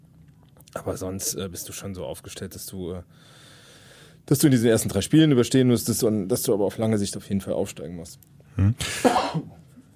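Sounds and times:
speech: 0.7 - 3.5, 4.3 - 9.6
sneeze or cough: 8.8 - 9.6.

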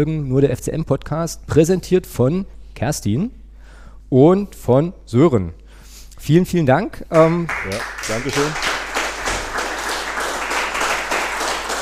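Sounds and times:
speech: 0.0 - 3.4, 4.1 - 5.6, 6.2 - 8.7
audience applauding: 7.2 - 11.8.

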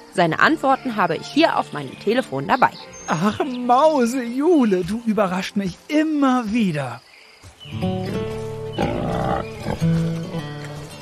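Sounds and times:
speech: 0.2 - 8.0
piglets grunting while eating: 8.8 - 10.0.

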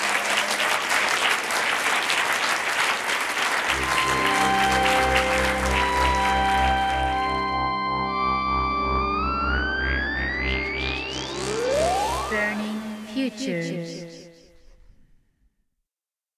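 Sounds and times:
crowd applause for guests: 0.0 - 7.7
loud music with rising swooping tones: 3.8 - 14.8.

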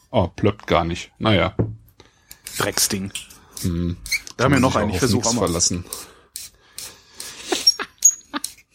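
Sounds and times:
speech: 0.1 - 1.8, 2.5 - 6.1
corkscrew squeaking as it is turned: 3.6 - 4.8, 7.5 - 8.7.

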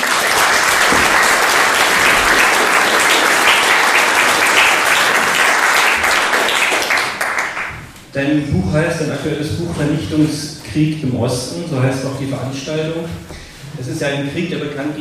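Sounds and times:
audience applause: 0.0 - 7.8
speech: 8.2 - 15.0.

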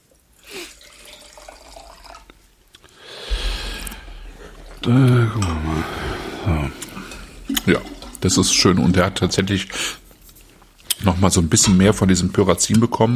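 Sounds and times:
rinsing out a wine glass with water: 0.5 - 2.7, 6.9 - 9.3
speech: 4.8 - 6.0, 7.6 - 10.0, 11.0 - 13.1.

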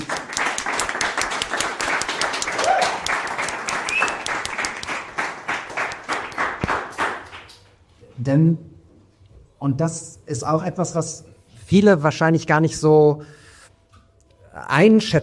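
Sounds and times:
audience applause: 0.0 - 7.6
speech: 8.2 - 8.7, 9.6 - 13.4, 14.6 - 15.2.

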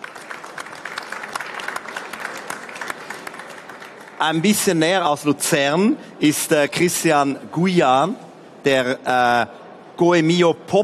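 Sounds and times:
audience applause: 0.0 - 4.5
speech: 4.2 - 10.8.

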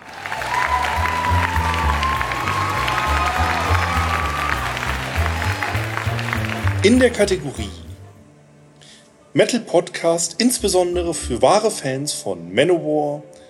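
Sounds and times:
applause: 0.0 - 7.8
speech: 6.8 - 7.8, 9.3 - 13.4.

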